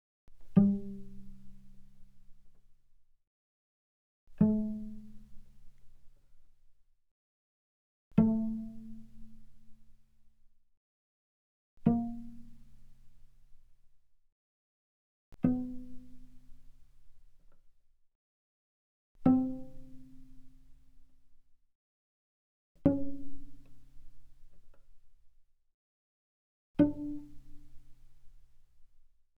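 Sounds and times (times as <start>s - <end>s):
cello pizzicato on the G string: 0.4s - 2.2s, 8.2s - 9.7s, 11.8s - 13.0s, 15.4s - 16.6s, 19.2s - 20.7s, 22.9s - 24.7s, 26.8s - 28.4s.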